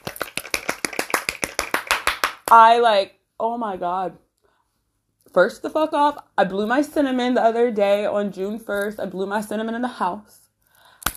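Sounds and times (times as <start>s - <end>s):
golf clap: 0.0s - 2.6s
speech: 2.5s - 4.3s, 5.3s - 10.4s.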